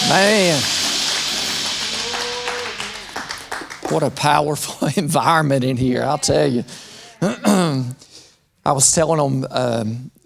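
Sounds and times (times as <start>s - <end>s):
audience hand clapping: 0.0s - 4.6s
speech: 0.1s - 0.8s, 3.9s - 8.1s, 8.7s - 10.2s.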